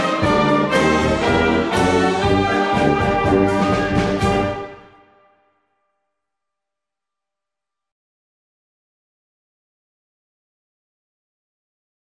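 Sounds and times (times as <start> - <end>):
music: 0.0 - 8.0.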